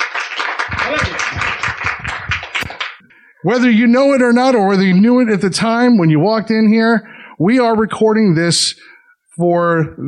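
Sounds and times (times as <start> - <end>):
crowd applauding: 0.0 - 3.0
speech: 3.4 - 10.0.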